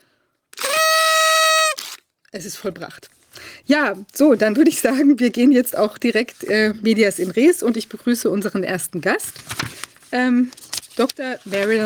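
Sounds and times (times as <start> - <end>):
party horn blowing: 0.6 - 2.0
speech: 2.3 - 11.8.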